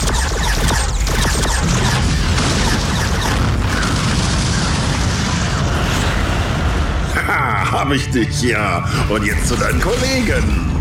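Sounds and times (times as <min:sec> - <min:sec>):
spaceship weapons opening fire: 0:00.0 - 0:07.1
speech: 0:07.9 - 0:10.7.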